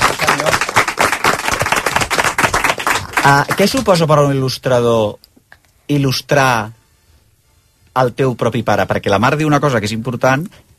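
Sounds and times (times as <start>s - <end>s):
applause from many hands: 0.0s - 4.1s
speech: 3.2s - 5.2s, 5.9s - 6.8s, 8.0s - 10.7s.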